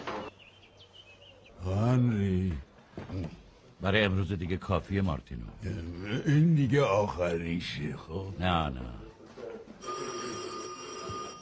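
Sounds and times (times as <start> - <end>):
speech: 1.6 - 2.7, 3.8 - 9.0
telephone bell ringing: 9.8 - 11.3.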